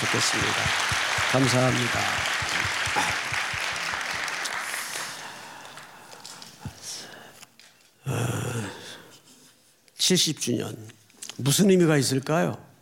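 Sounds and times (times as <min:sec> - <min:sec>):
speech: 0:00.0 - 0:03.6, 0:10.1 - 0:12.7
audience applause welcoming guests: 0:00.0 - 0:06.4.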